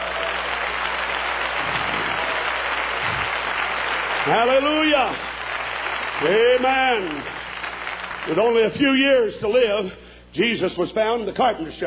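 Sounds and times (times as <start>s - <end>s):
crowd clapping hands: 0.0s - 9.1s
speech: 4.2s - 5.3s, 6.2s - 7.4s, 8.2s - 11.8s.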